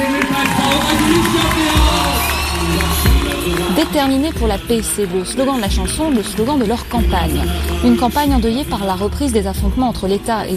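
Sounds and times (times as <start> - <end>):
crowd cheering and shouting at a campaign rally for Selahattin Demirtas: 0.0 - 8.4
speech: 3.8 - 10.5.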